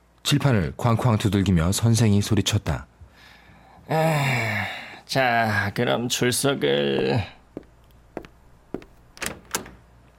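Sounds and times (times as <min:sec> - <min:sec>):
speech: 0:00.3 - 0:02.9, 0:03.9 - 0:07.4
classroom door opening: 0:08.8 - 0:09.9.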